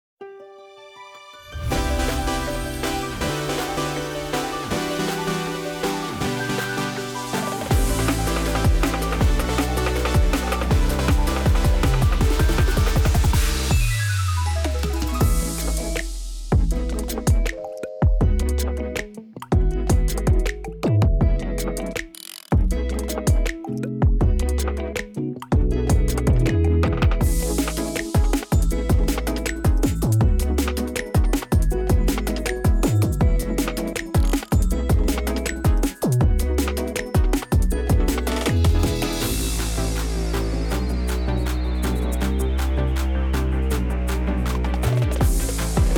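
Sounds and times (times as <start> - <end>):
instrumental music: 0.2 - 45.9.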